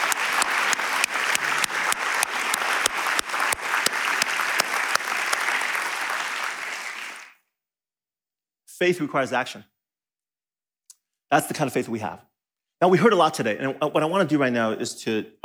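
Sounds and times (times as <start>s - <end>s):
audience applause: 0.0s - 7.4s
speech: 8.8s - 9.7s, 11.3s - 15.4s.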